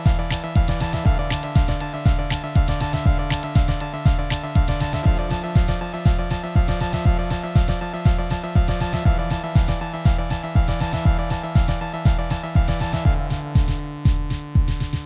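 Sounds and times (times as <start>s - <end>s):
Korg Volca synthesizer noise: 0.0s - 14.9s.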